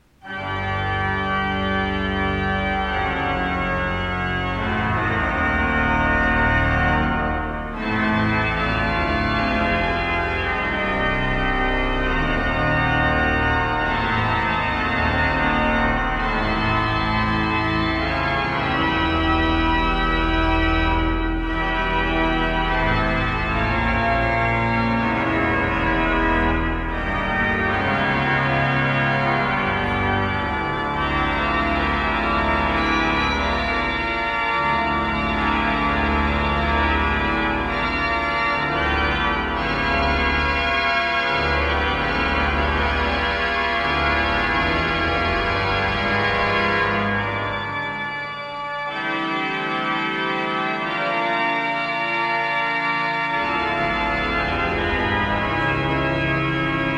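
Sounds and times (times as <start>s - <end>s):
organ improvisation: 0.2s - 56.9s.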